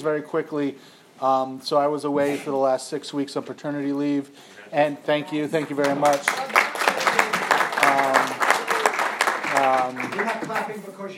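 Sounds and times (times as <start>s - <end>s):
speech: 0.0s - 6.8s, 9.9s - 11.1s
audience clapping: 5.6s - 10.9s.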